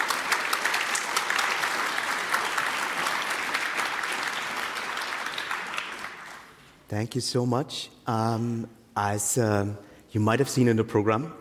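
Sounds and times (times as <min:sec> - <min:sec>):
crowd applause: 0:00.0 - 0:06.6
speech: 0:06.9 - 0:11.4.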